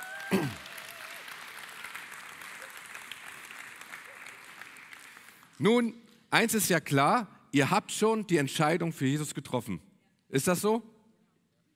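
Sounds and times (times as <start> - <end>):
audience applause: 0.0 - 5.6
speech: 5.6 - 10.9.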